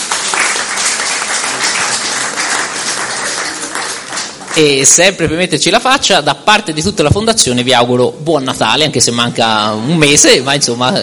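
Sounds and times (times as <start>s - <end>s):
audience applauding: 0.0s - 5.0s
speech: 4.6s - 11.0s.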